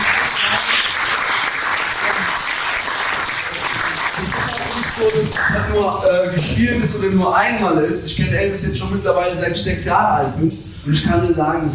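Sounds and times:
audience applause: 0:00.0 - 0:05.7
speech: 0:05.0 - 0:11.7.

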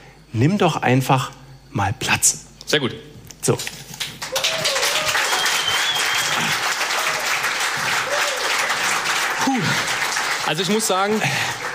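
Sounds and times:
speech: 0:00.3 - 0:03.9, 0:10.5 - 0:11.6
crowd clapping: 0:03.9 - 0:11.7
whistle-like tones: 0:04.3 - 0:06.6.

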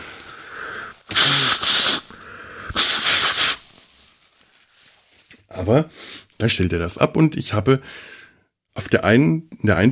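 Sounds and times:
nose blowing: 0:00.0 - 0:03.6
speech: 0:05.6 - 0:08.2, 0:08.8 - 0:09.9.

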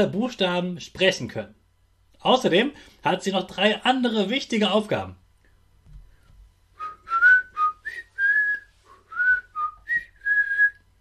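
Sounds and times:
speech: 0:00.0 - 0:01.6, 0:02.2 - 0:05.2
person whistling: 0:06.8 - 0:10.8.

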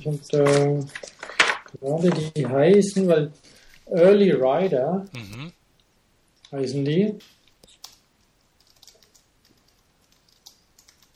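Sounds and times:
speech: 0:00.0 - 0:05.6, 0:06.5 - 0:07.4
computer keyboard typing: 0:08.6 - 0:11.1.

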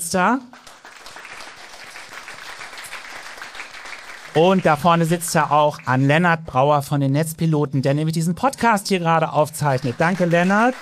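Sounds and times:
speech: 0:00.1 - 0:00.6, 0:04.4 - 0:10.8
audience applause: 0:00.5 - 0:06.0, 0:09.7 - 0:10.8.

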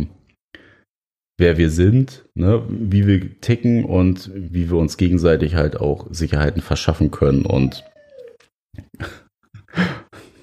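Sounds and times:
speech: 0:01.4 - 0:07.9, 0:08.8 - 0:09.2
dog squeaking and whining after bath: 0:07.4 - 0:08.5.

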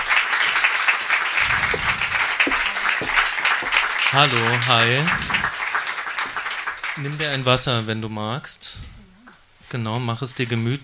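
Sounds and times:
audience applause: 0:00.0 - 0:07.5
faint murmurs: 0:01.4 - 0:05.6
speech: 0:04.1 - 0:05.3, 0:07.0 - 0:08.9, 0:09.7 - 0:10.8.

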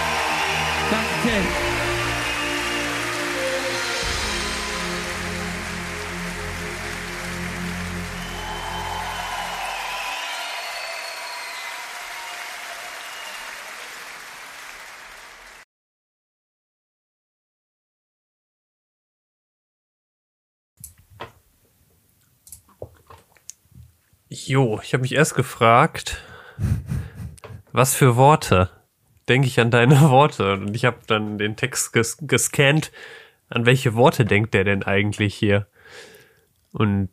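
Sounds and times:
low musical drone: 0:00.0 - 0:09.6
crowd applauding: 0:00.0 - 0:15.6
speech: 0:00.9 - 0:01.7, 0:24.5 - 0:26.8, 0:27.8 - 0:36.1, 0:36.7 - 0:37.1.

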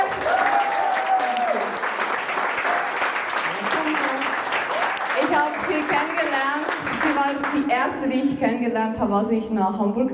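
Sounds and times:
audience applause: 0:00.0 - 0:07.8
speech: 0:07.8 - 0:10.1.

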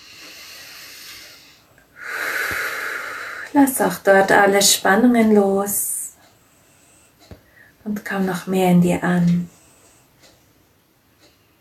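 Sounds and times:
deep breath into the belly during a guided breathing exercise: 0:00.0 - 0:03.5, 0:06.5 - 0:07.8
speech: 0:03.5 - 0:05.8, 0:07.9 - 0:09.6.

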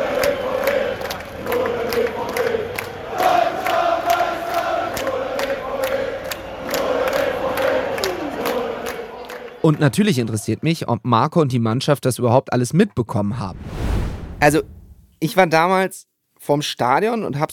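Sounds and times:
football fans shouting and chanting in stadium crowd: 0:00.0 - 0:10.4
speech: 0:09.6 - 0:17.5.

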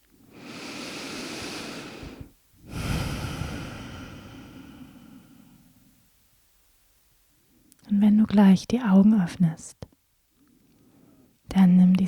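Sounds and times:
deep slow breathing during a guided relaxation: 0:00.2 - 0:05.9, 0:10.4 - 0:11.4
speech: 0:08.0 - 0:09.9, 0:11.6 - 0:12.0.

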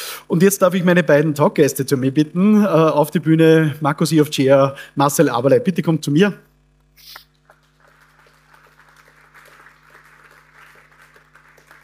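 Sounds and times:
low constant hum: 0:00.0 - 0:11.8
speech: 0:00.3 - 0:07.2
audience applause: 0:07.4 - 0:11.8.

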